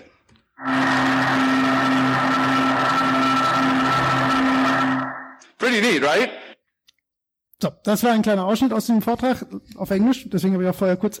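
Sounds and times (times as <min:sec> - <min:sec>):
freezer electric hum recorded through a stethoscope: 0:00.6 - 0:05.4
speech: 0:05.8 - 0:06.4, 0:07.6 - 0:11.1.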